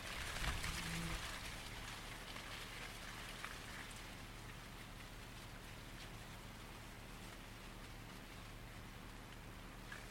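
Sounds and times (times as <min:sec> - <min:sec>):
summer wind rustling through a cornfield in Pembrokeshire: 0:00.0 - 0:10.1.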